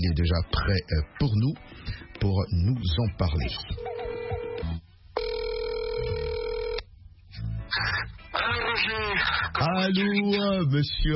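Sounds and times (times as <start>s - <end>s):
speech: 0.0s - 3.9s, 6.0s - 6.5s, 7.7s - 11.1s
telephone call ringing: 3.8s - 6.8s.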